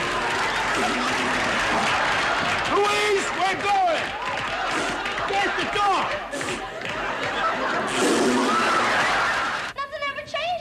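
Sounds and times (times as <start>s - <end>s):
people blowing raspberries at each other: 0.0s - 2.4s, 4.6s - 5.2s, 6.2s - 6.9s, 7.7s - 9.0s
laughter: 0.0s - 9.8s.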